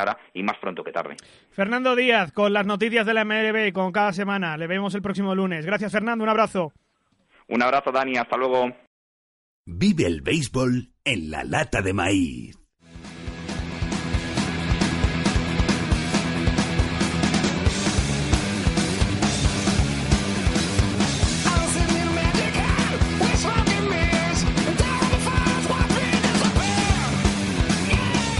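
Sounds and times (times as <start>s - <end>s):
speech: 0.0s - 6.8s, 7.5s - 8.8s, 9.6s - 12.6s
grunge rock music: 9.7s - 28.3s.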